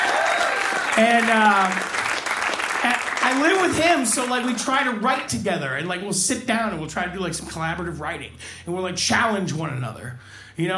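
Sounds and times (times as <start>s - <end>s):
audience applause: 0.0s - 4.9s
speech: 1.0s - 2.0s, 2.8s - 10.7s.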